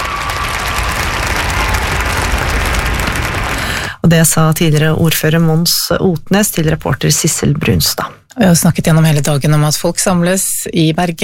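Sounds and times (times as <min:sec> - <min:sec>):
applause at statue unveiling: 0:00.0 - 0:04.0
speech: 0:04.1 - 0:11.2.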